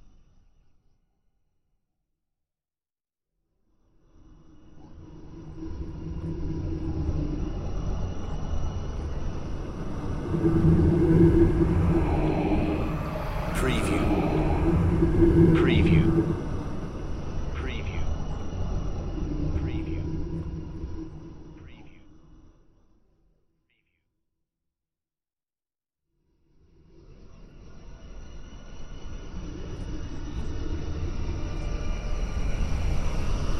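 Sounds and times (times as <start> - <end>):
smooth dark flybys: 3.9 - 23.0, 26.6 - 33.5.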